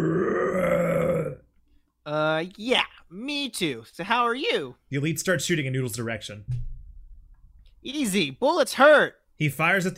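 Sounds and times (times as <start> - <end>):
angry roar of a creature: 0.0 - 1.5
speech: 2.1 - 6.6, 7.8 - 9.9.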